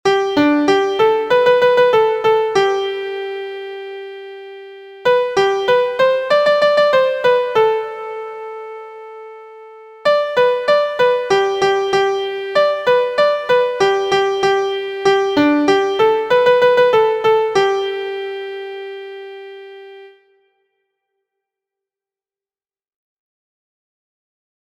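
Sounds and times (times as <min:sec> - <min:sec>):
MIDI music: 0:00.0 - 0:09.0, 0:10.0 - 0:20.3.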